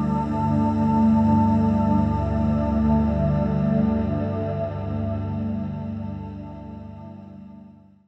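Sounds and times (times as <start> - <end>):
magic airy flute: 0.0 - 6.3.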